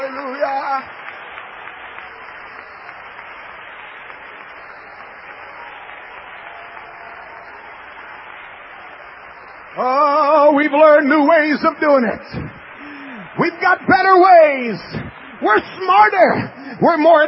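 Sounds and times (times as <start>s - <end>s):
audience clapping: 0.0s - 17.2s
speech: 9.8s - 12.5s, 13.4s - 17.2s.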